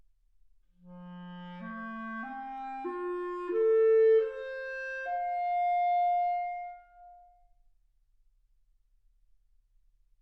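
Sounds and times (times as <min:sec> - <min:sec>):
clarinet: 0:00.8 - 0:07.5.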